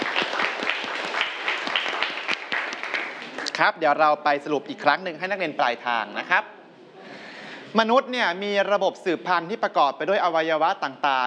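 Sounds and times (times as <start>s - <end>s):
students clapping for a classmate: 0.0s - 3.7s
speech: 3.6s - 6.6s, 7.7s - 11.2s.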